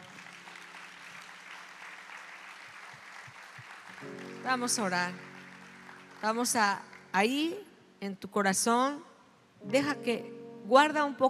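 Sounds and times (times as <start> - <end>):
audience applause: 0.0 - 7.1
speech: 4.0 - 5.3, 6.2 - 11.2.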